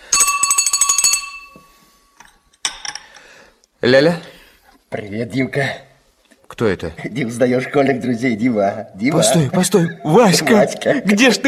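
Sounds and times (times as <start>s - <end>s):
telephone ringing: 0.0s - 2.2s
speech: 3.8s - 4.2s, 5.0s - 5.9s, 6.6s - 11.4s.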